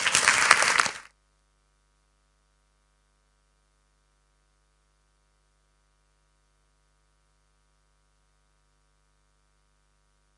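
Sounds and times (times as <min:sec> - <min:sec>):
audience applause: 0:00.0 - 0:01.1.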